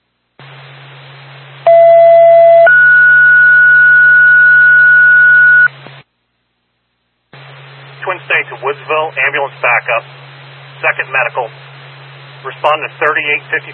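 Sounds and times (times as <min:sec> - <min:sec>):
hissy humming radio channel: 0:00.2 - 0:01.6, 0:04.6 - 0:06.2, 0:07.2 - 0:13.7
radio dispatch paging tones: 0:01.7 - 0:05.7
speech: 0:09.0 - 0:10.2, 0:10.8 - 0:11.6, 0:12.4 - 0:13.7.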